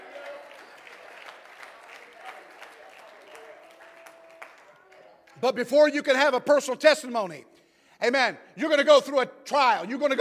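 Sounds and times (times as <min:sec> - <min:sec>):
audience clapping hands: 0:00.0 - 0:05.4
speech: 0:05.4 - 0:10.1.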